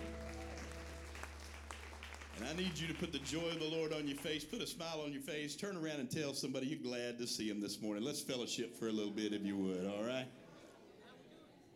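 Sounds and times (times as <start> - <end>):
low sustained hum: 0.0 - 3.2
organ-like tone: 0.0 - 3.4
audience clapping: 0.0 - 4.6
speech: 2.4 - 10.4.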